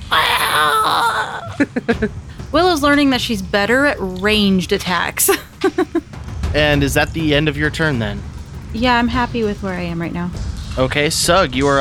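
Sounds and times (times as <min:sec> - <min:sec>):
voice imitating giant rat's death scream: 0:00.0 - 0:01.7
laughter: 0:00.1 - 0:02.3, 0:05.2 - 0:06.1
speech: 0:01.6 - 0:11.8.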